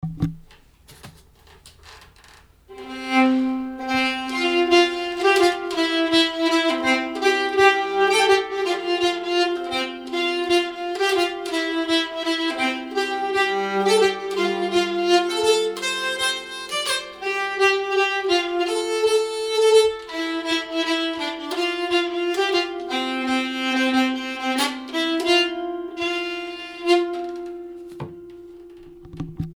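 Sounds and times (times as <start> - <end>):
Swedish folk dance tune in F major: 2.5 - 29.5.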